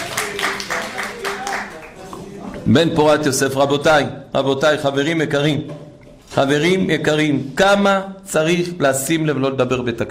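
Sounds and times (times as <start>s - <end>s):
audience clapping: 0.0s - 2.1s
speech: 2.6s - 5.8s, 6.4s - 10.1s.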